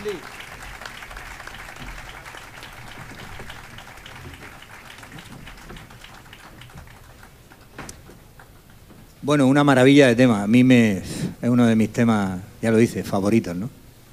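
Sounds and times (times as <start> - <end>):
speech: 0.0 - 0.4, 9.2 - 13.8
audience applause: 0.0 - 8.6.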